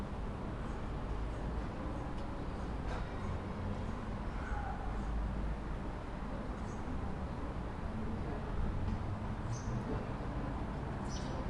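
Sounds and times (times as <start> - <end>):
pedestrians mumbling: 0.1 - 11.4
birdsong in a suburban tunnel: 9.5 - 9.9, 11.0 - 11.4.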